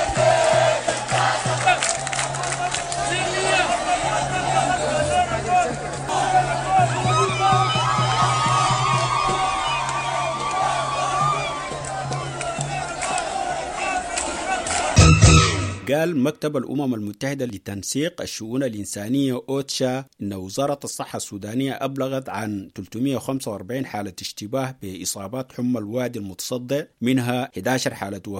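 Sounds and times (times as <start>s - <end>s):
protesters in Sudan chanting in front of the Council of Ministers: 0.0s - 15.8s
shouts and whoops over the crowd: 1.6s - 15.6s
speech: 15.9s - 28.3s.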